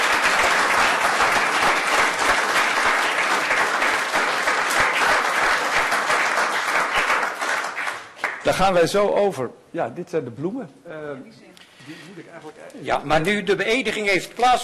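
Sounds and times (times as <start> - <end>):
audience clapping: 0.0 - 8.8
speech: 8.5 - 14.6.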